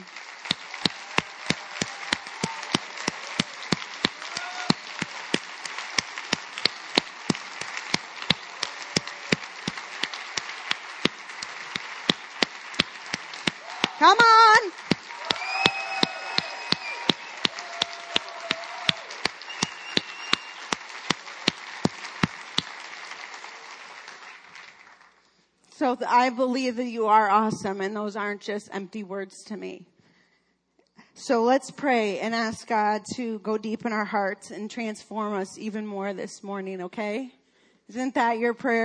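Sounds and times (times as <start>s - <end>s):
round of applause: 0.0s - 25.5s
speech: 14.0s - 14.6s, 25.8s - 29.9s, 31.2s - 38.8s.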